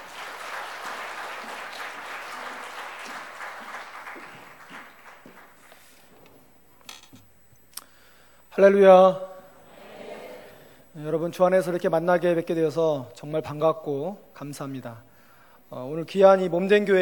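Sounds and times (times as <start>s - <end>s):
crowd applauding: 0.0s - 6.0s
speech: 8.6s - 9.3s, 11.0s - 15.1s, 15.7s - 17.0s.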